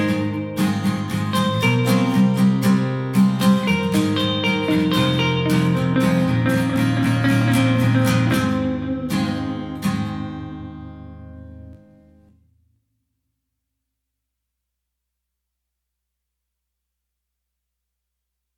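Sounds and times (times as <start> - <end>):
guitar melody: 0.0 - 12.5.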